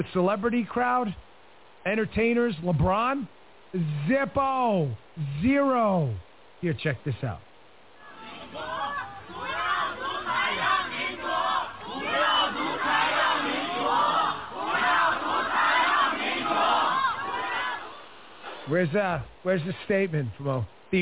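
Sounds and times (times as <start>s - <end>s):
speech: 0.0s - 7.5s, 18.7s - 20.9s
protest crowd shouting in China: 8.0s - 18.2s.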